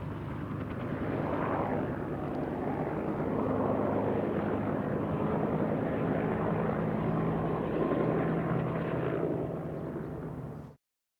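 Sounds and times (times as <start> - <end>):
helicopter: 0.0 - 10.8.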